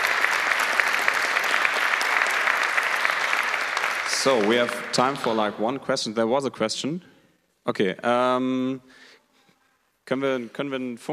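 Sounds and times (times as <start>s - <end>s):
audience applause: 0.0s - 5.6s
speech: 4.2s - 7.1s, 7.7s - 9.1s, 10.1s - 11.1s.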